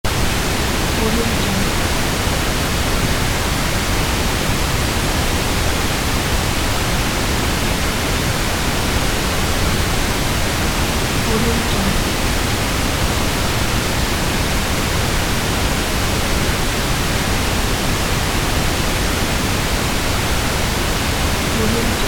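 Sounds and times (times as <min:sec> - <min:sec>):
white noise: 0:00.1 - 0:22.0.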